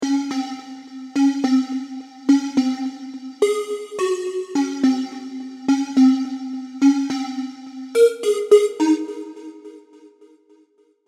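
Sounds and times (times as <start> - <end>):
Serum synthesizer sounds: 0.0 - 9.2.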